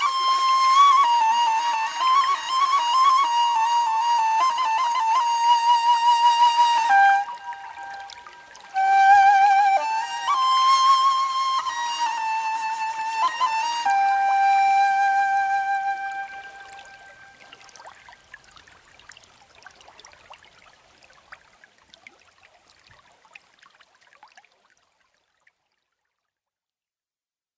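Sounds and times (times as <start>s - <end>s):
ney flute solo: 0.0s - 17.8s.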